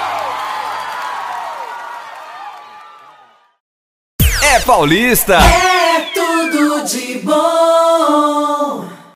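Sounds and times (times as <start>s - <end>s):
audience applause: 0.0s - 3.4s
audience cheering: 0.0s - 3.6s, 4.7s - 7.0s
speech: 4.6s - 9.0s.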